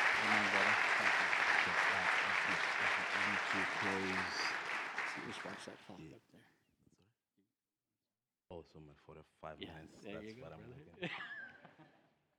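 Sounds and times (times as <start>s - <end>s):
laughter: 0.0s - 5.9s, 9.7s - 12.1s
voices calling out: 0.0s - 5.9s
congregation applauding to welcome a visiting pastor: 0.0s - 6.0s
speech: 3.6s - 4.4s, 5.2s - 6.6s, 8.5s - 11.4s.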